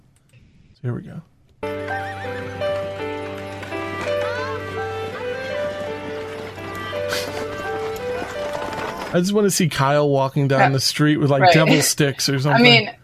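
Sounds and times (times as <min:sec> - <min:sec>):
speech: 0:00.8 - 0:02.6, 0:09.1 - 0:13.0
goofy theme music from a TV episode's opening scene: 0:01.6 - 0:09.6
clip-clopping hooves: 0:01.7 - 0:09.6
horse-like whinnies: 0:03.9 - 0:09.2.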